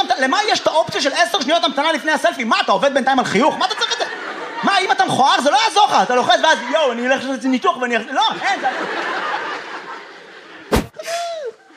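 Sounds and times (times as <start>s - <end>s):
speech: 0.2s - 3.9s, 4.6s - 9.2s
laughter: 3.4s - 11.7s
audience member sneezing: 10.7s - 11.5s.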